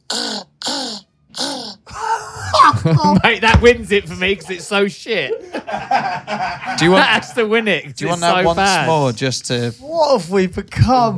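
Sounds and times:
man's voice imitating an exotic bird: 0.0 - 2.8
laughter: 1.9 - 7.5
speech: 2.8 - 11.1.

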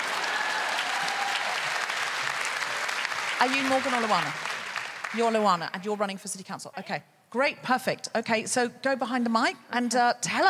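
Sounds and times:
audience applause: 0.0 - 5.7
speech: 3.4 - 4.5, 5.1 - 10.4.

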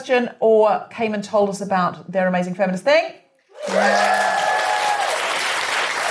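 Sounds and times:
speech: 0.0 - 4.4
audience applause: 3.6 - 6.0.

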